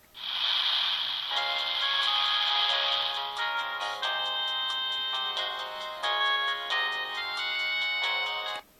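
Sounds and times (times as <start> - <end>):
Samsung SGH-E700 ringtone: 1.3 - 8.7.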